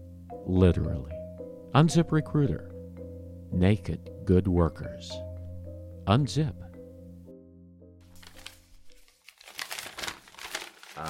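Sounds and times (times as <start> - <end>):
held musical tone: 0.0 - 9.0
speech: 0.4 - 2.7, 3.5 - 5.3, 6.1 - 6.7
piece of paper rustling and crinkling: 8.0 - 11.0.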